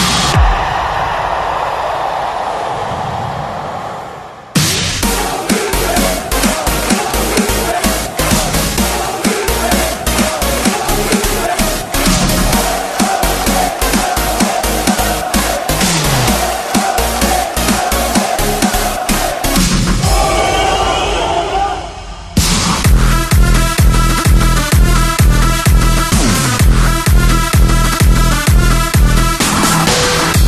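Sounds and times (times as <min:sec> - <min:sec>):
crowd noise: 0:00.0 - 0:24.7
EDM snares: 0:04.6 - 0:20.4, 0:22.4 - 0:30.4.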